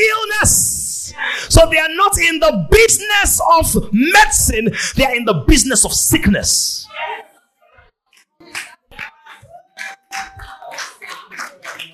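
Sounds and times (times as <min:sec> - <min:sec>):
speech: 0:01.5 - 0:07.2
audience clapping: 0:08.1 - 0:11.9.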